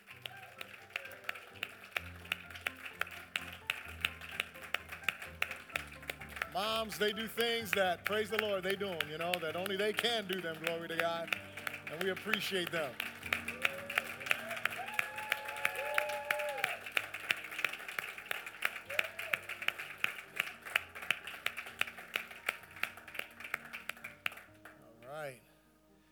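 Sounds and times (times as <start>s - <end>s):
audience applauding with dense rapid hand claps: 0.0s - 25.3s
voices and whoops: 0.2s - 1.5s, 13.5s - 16.9s, 18.8s - 19.5s
speech: 6.6s - 13.1s.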